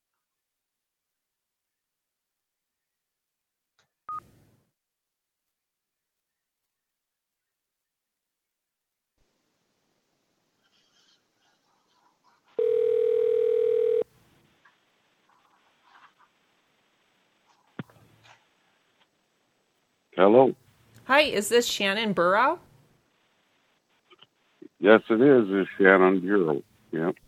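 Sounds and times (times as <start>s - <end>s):
rustling: 10.5s - 19.8s
telephone dialing key tones and clicks: 12.6s - 14.0s
speech: 20.2s - 22.7s, 24.8s - 27.2s.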